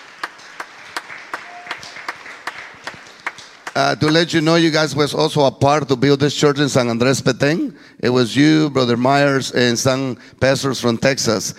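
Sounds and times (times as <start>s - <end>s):
scattered applause: 0.0s - 4.7s
rhythmic audience clapping: 0.0s - 5.0s
speech: 3.8s - 11.5s.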